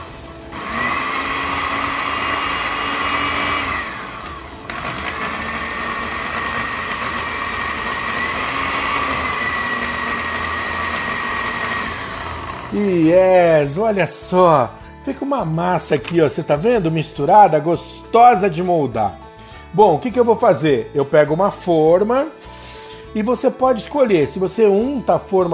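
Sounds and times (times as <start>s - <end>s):
food processor blending potato, broccoli and cauliflower: 0.0s - 13.4s
speech: 12.8s - 22.5s, 23.1s - 25.5s.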